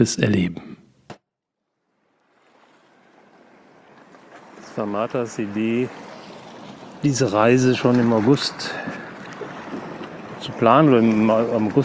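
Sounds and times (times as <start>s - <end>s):
speech: 0.0s - 0.7s, 4.8s - 6.1s, 7.0s - 9.0s, 10.4s - 11.8s
ocean waves rushing: 2.5s - 11.8s.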